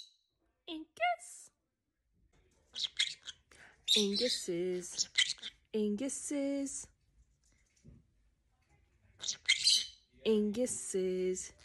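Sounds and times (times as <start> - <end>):
pet bird chirping: 2.8 - 5.6, 9.2 - 10.0
speech: 3.9 - 6.9, 10.2 - 11.6.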